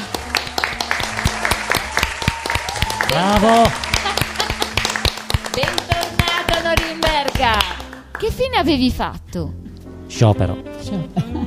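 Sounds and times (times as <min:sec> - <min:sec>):
applause: 0:00.0 - 0:08.5
speech: 0:03.1 - 0:03.8, 0:08.2 - 0:11.4.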